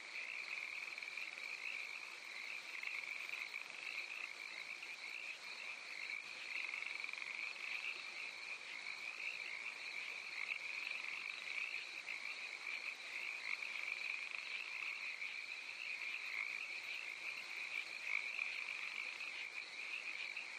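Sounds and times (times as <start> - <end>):
crickets chirping in California: 0.0 - 20.5
frogs croaking in California: 0.0 - 20.5.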